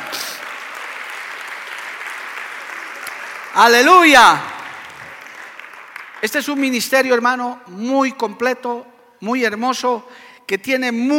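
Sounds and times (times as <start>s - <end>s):
audience applause: 0.0s - 6.6s
speech: 3.6s - 4.5s, 6.2s - 11.1s.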